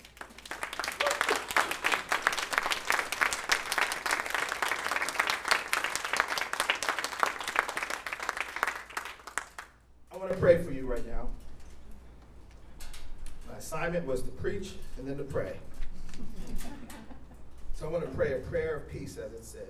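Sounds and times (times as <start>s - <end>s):
church congregation standing and applauding in praise: 0.0s - 10.3s
laughter: 0.8s - 3.1s, 16.0s - 18.2s
speech: 10.4s - 11.2s, 13.7s - 15.7s, 17.8s - 19.6s.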